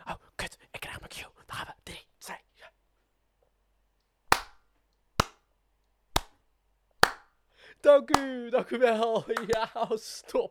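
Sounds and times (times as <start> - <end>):
sharp hand claps: 4.3 - 4.6, 5.2 - 5.4, 6.2 - 6.4, 7.0 - 7.4, 8.1 - 8.3, 9.3 - 9.8
speech: 7.9 - 10.4
laughter: 8.6 - 10.3.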